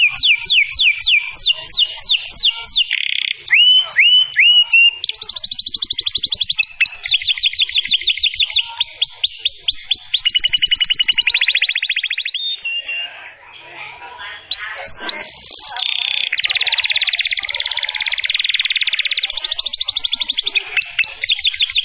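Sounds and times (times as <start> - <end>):
canary singing: 0.0 - 21.8.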